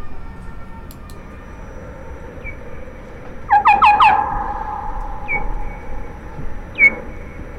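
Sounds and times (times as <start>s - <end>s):
steady hiss: 0.0s - 7.5s
bats' shrill harsh chirping cries: 1.3s - 7.5s.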